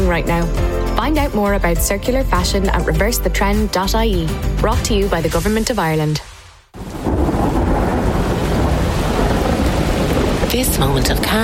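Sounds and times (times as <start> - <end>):
speech: 0.1 - 6.3, 10.6 - 11.4
stormy night wind over the Midlands: 6.8 - 11.4.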